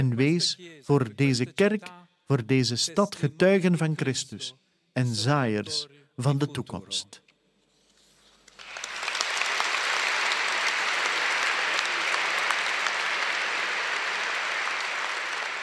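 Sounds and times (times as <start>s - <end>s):
speech: 0.0s - 7.2s
large audience applause: 8.6s - 15.6s.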